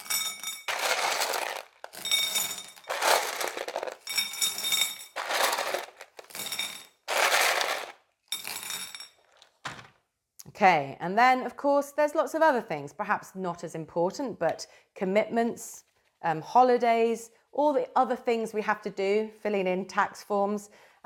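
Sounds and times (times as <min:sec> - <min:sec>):
gravel being poured in: 0:00.7 - 0:08.0
speech: 0:10.6 - 0:20.9.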